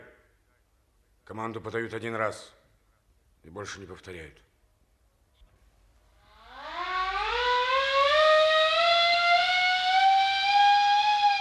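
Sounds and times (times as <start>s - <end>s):
speech: 1.3s - 2.6s, 3.4s - 4.5s
ship siren summoning crew to a meeting: 6.2s - 11.3s.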